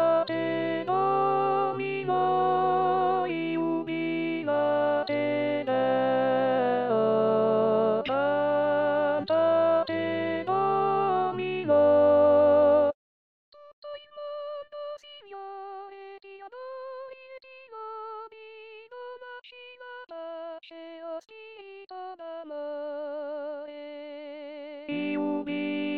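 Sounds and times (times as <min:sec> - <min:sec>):
contralto voices singing: 0:00.0 - 0:12.9, 0:24.9 - 0:25.9.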